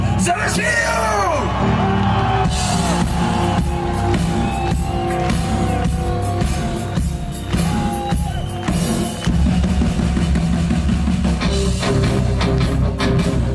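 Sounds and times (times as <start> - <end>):
crowd shouting and whooping: 0.0 - 10.4
crowd applauding: 1.1 - 13.4.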